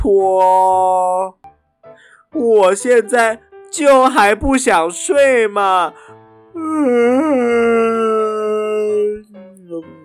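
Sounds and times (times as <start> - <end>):
speech: 0.0 - 0.8, 2.3 - 8.1
person yawning groan while stretching: 6.6 - 10.0.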